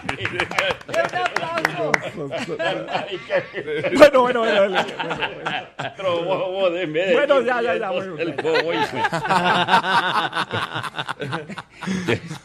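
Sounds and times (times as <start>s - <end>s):
speech: 0.0s - 1.0s, 2.0s - 12.4s
scattered hand claps: 0.0s - 2.2s
chuckling laughter: 0.0s - 12.4s.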